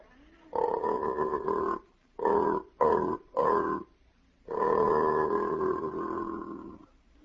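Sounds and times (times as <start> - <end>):
aardvark mating call played backwards, slowed down: 0.6 - 3.9, 4.5 - 6.8.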